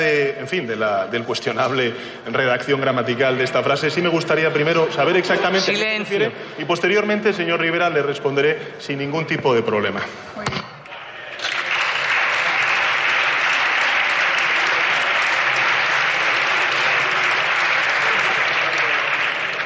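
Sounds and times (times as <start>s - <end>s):
speech: 0.0s - 10.6s
parliament members applauding: 10.9s - 19.6s.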